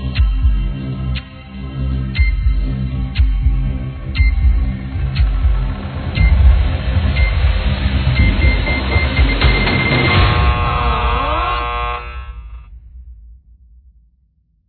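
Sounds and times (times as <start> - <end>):
clock ticking: 0.1 - 1.3, 2.1 - 10.6
buzzer: 8.2 - 12.7.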